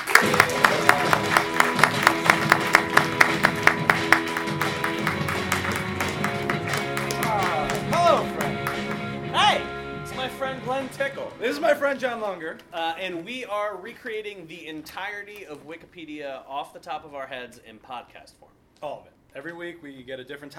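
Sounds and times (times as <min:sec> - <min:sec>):
crowd voices and cheering: 0:00.0 - 0:08.7
audience clapping: 0:00.0 - 0:11.4
speech: 0:11.7 - 0:20.5.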